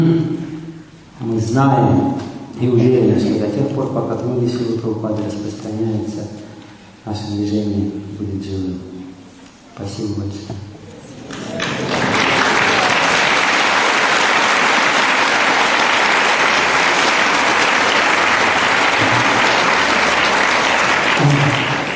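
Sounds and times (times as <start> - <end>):
speech: 1.5 - 8.9, 9.8 - 10.7
audience applause: 11.2 - 21.9.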